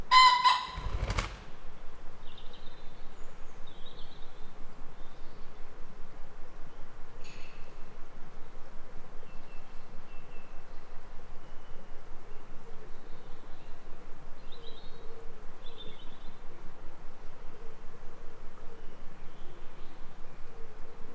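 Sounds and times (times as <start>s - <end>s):
morning forest ambience: 0.1s - 1.6s.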